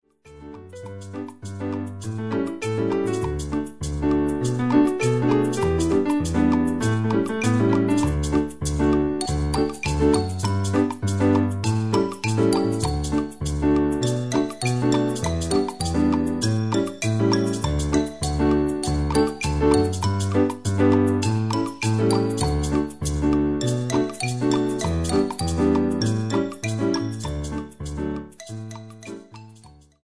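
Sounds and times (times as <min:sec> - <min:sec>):
instrumental music: 0:00.2 - 0:30.0.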